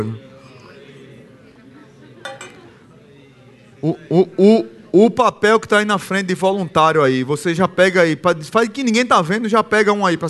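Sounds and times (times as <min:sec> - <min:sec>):
speech: 0:00.0 - 0:00.3, 0:03.8 - 0:10.2
murmur of voices: 0:00.0 - 0:10.2
glass clinking: 0:02.3 - 0:02.8.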